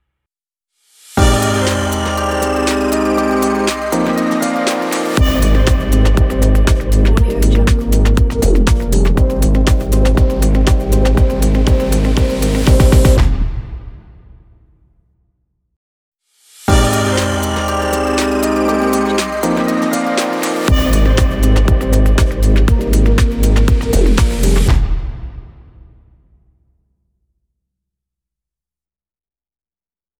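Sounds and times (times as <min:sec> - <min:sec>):
fashion logo music: 0:01.2 - 0:14.0, 0:16.7 - 0:25.1.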